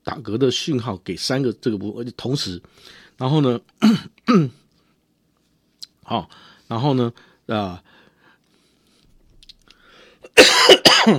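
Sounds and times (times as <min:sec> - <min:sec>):
speech: 0:00.1 - 0:04.6, 0:06.1 - 0:08.0, 0:10.4 - 0:11.1
person with a cold coughing harshly: 0:03.8 - 0:04.6, 0:10.3 - 0:11.1.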